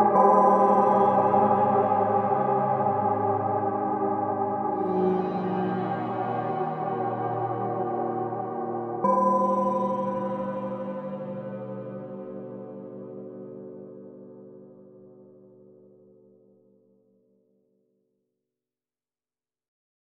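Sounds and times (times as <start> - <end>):
Japanese horror music: 0.0 - 14.6.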